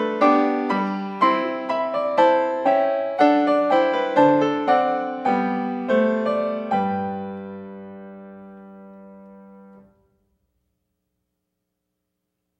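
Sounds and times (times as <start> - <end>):
keyboard variation: 0.0 - 9.8.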